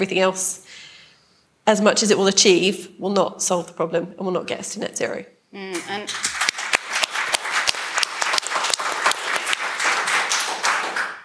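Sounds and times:
speech: 0.0 - 0.9, 1.6 - 6.3
audience applause during a panel debate: 6.0 - 11.2.

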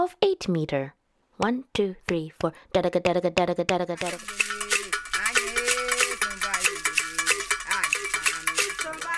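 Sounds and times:
speech: 0.0 - 4.6
voices singing: 1.4 - 9.1
percussion: 2.0 - 9.1
bright metallic bell playing triplet rhythm: 4.0 - 9.1.

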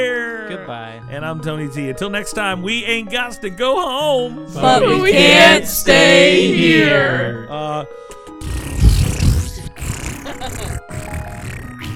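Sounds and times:
speech: 0.0 - 8.5
voice imitating a deflating balloon: 8.4 - 11.9.

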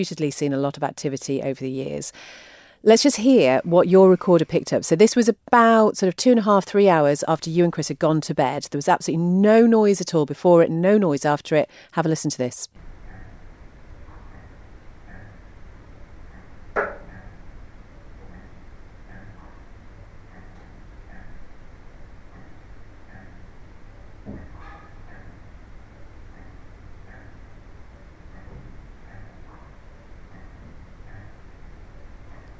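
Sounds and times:
speech: 0.0 - 12.9
clock ticking: 2.9 - 32.5
knocks: 16.7 - 17.2, 24.2 - 24.9.

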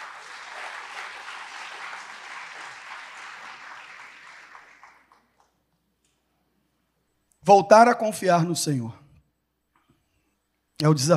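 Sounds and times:
crowd applauding in a large room: 0.0 - 5.6
speech: 7.5 - 9.0, 10.8 - 11.1.

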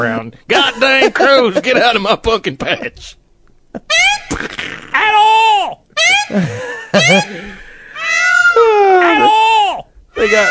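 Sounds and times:
speech: 0.0 - 7.5, 8.6 - 9.5, 10.2 - 10.5
peacock calling: 3.9 - 4.4, 7.0 - 10.5
laughter: 6.1 - 9.5.

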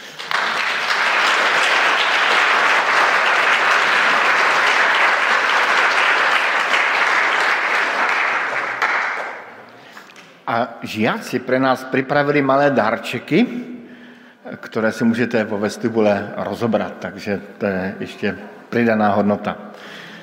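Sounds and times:
audience applause: 0.0 - 9.6
speech: 10.6 - 13.7, 14.5 - 20.0.

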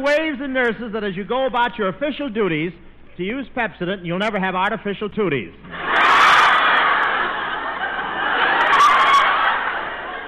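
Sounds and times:
speech: 0.0 - 6.0
large crowd cheering and shouting: 5.7 - 10.2
scattered laughter and whoops: 5.7 - 10.2.

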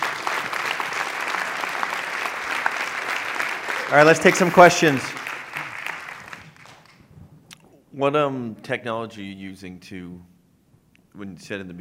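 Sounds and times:
audience applause: 0.0 - 7.0
speech: 3.9 - 5.2, 8.0 - 10.3, 11.2 - 11.8.

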